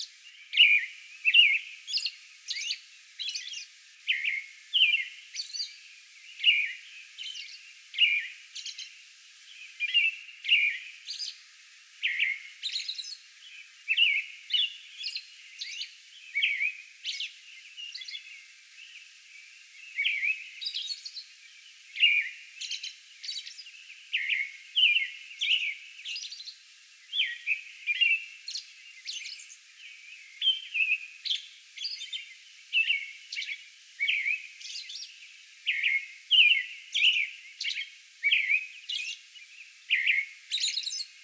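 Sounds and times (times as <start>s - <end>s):
American robin song: 0.0s - 41.2s.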